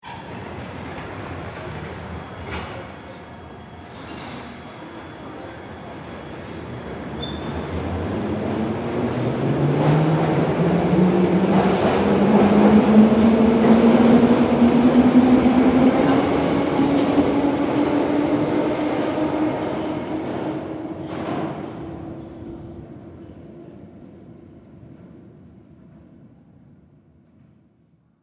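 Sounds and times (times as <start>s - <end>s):
London subway train moving away: 0.0s - 28.2s.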